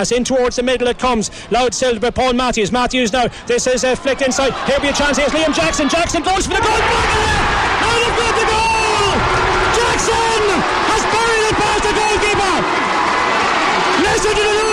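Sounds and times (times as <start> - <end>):
speech: 0.0 - 11.2
huge crowd roaring and cheering at a Gaelic football match: 3.5 - 14.7.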